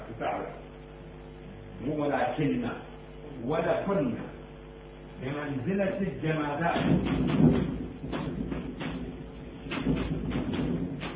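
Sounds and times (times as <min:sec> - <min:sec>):
speech: 0:01.8 - 0:04.4, 0:05.2 - 0:08.6
transparent sliding door rolling along its track: 0:06.8 - 0:11.1.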